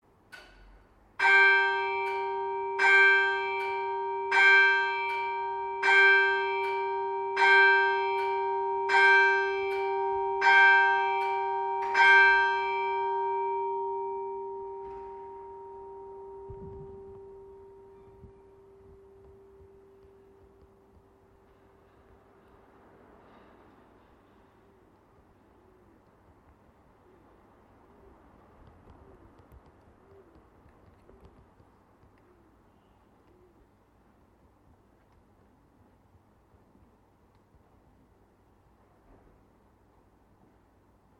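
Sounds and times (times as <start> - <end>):
clocks striking eight am in Worcester: 0.4 - 24.5.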